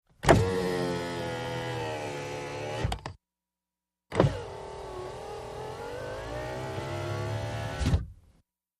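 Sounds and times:
Mitsubishi Montero driver's side electric window opening and closing: 0.2s - 3.1s, 4.1s - 8.1s.

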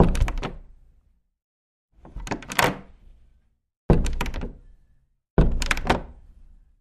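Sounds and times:
wooden door opening and closing: 0.0s - 0.7s, 2.0s - 3.0s, 3.9s - 4.7s, 5.4s - 6.3s.

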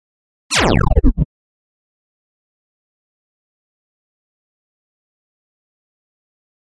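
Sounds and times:
laser low frequency wash effect: 0.5s - 1.3s.

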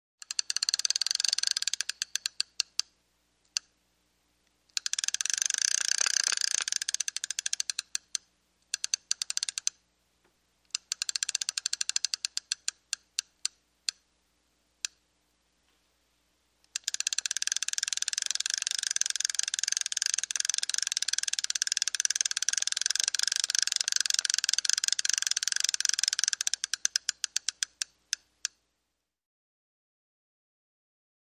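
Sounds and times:
fishing pole reel winding: 0.2s - 2.8s, 4.8s - 9.8s, 10.7s - 13.3s, 16.7s - 28.2s.

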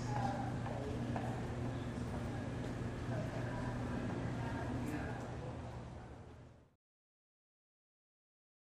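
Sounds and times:
large lobby ambience with activity: 0.0s - 6.8s.

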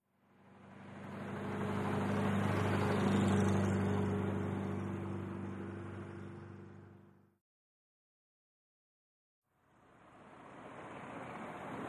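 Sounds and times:
Buick passing by at medium speed: 0.3s - 7.1s, 9.6s - 11.8s.

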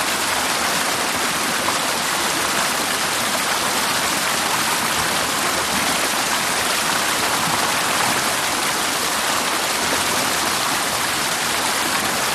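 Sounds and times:
small waterfall: 0.0s - 12.3s.

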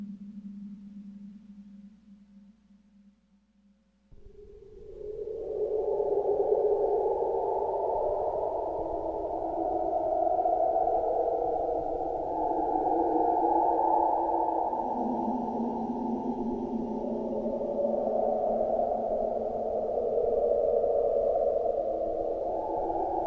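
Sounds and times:
ghostly swirling spirit air: 4.8s - 23.2s.

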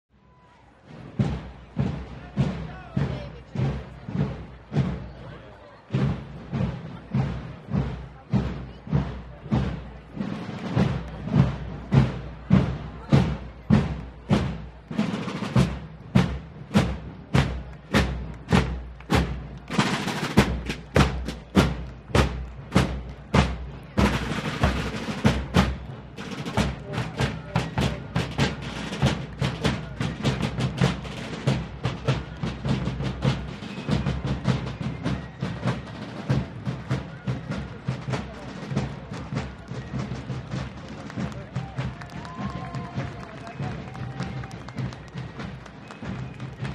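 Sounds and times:
parade ambience: 0.1s - 46.7s.

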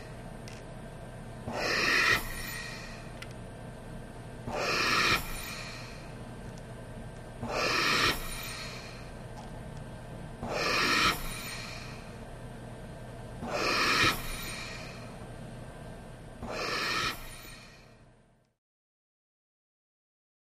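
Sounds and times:
breathing through respirator: 1.5s - 3.2s, 4.5s - 6.2s, 7.4s - 9.2s, 10.4s - 12.2s, 13.4s - 15.2s, 16.4s - 18.0s.

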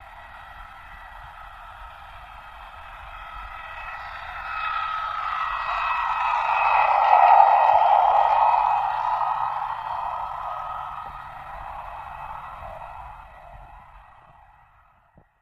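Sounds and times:
torpedo jet passing by: 3.8s - 14.4s.

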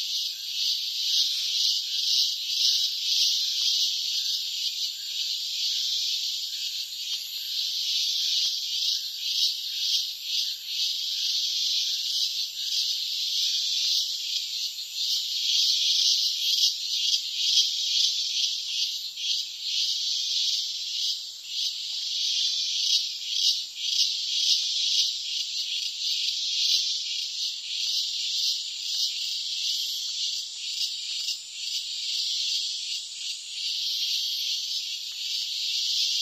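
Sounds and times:
hollow cicadas buzzing: 0.0s - 36.2s.

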